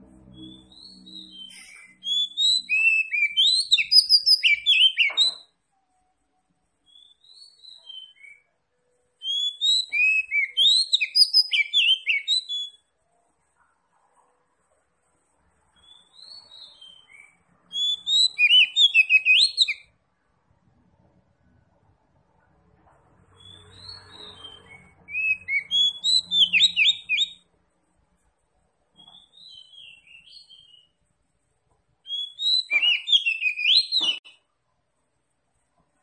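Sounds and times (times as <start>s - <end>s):
Oriental magpie-robin song of varied whistles and chirps: 0.3s - 5.5s, 6.8s - 8.5s, 9.2s - 12.9s, 15.8s - 19.9s, 23.4s - 27.4s, 29.0s - 31.0s, 32.0s - 34.4s.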